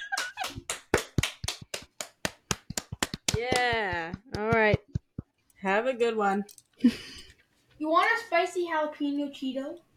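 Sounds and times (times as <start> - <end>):
hands clapping: 0.0 - 5.3
speech: 3.4 - 4.2, 5.6 - 7.2, 7.8 - 9.9.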